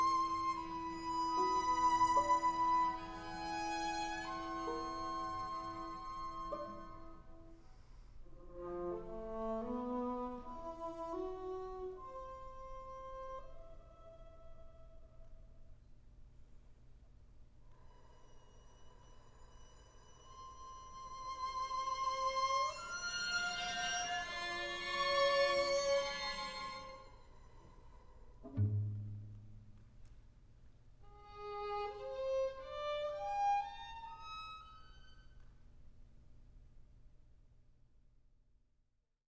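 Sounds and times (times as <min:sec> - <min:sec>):
very slow string quartet: 0:00.0 - 0:15.0, 0:18.8 - 0:30.2, 0:31.0 - 0:35.6.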